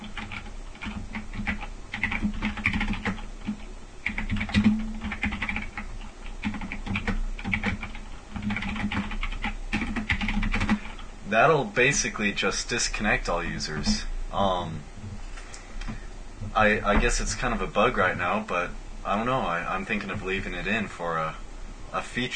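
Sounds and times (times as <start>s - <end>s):
typing a chat message on a computer keyboard: 0.0s - 11.0s
speech: 11.3s - 14.9s, 16.6s - 22.3s.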